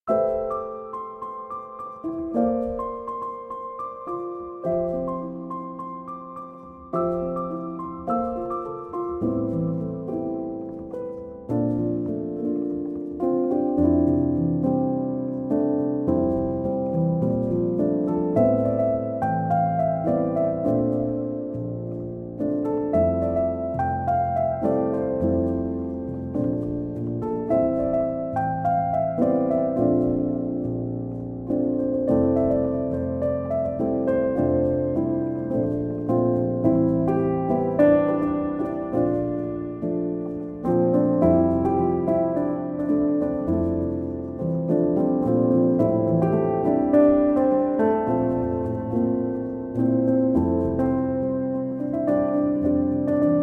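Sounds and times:
piano instrumental: 0:00.0 - 0:53.4.

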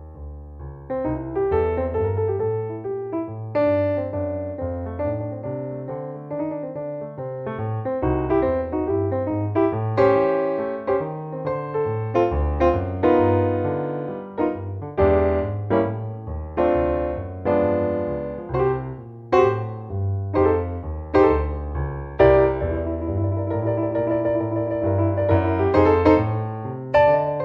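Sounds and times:
solo piano blues improvisation: 0:00.0 - 0:27.4.

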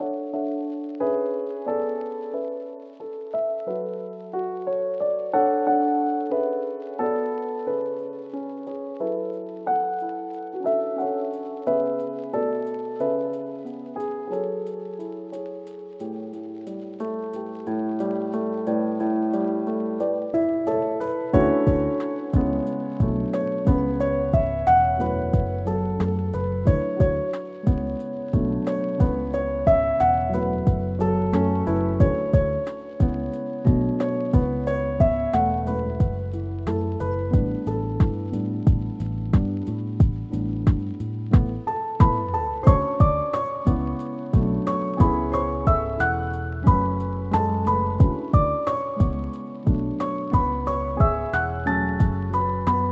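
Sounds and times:
lofi piano instrumental: 0:00.0 - 0:52.9.

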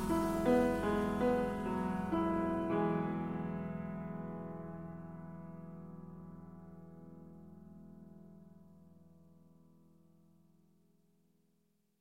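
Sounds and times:
jazz piano trio: 0:00.0 - 0:04.5.

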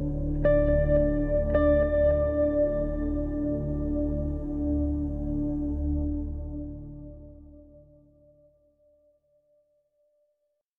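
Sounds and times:
soothing spa music: 0:00.0 - 0:08.6.

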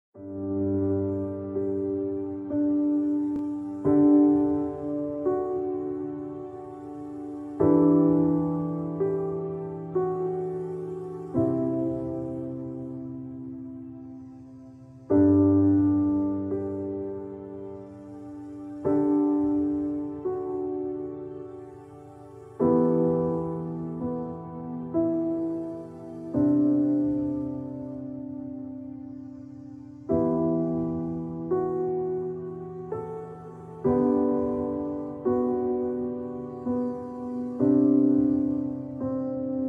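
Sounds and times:
relaxing piano: 0:00.1 - 0:39.6.

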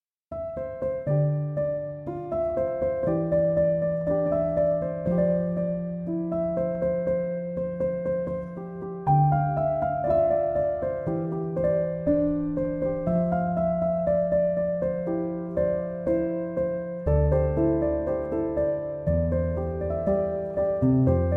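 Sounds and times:
piano instrumental: 0:00.3 - 0:21.3.

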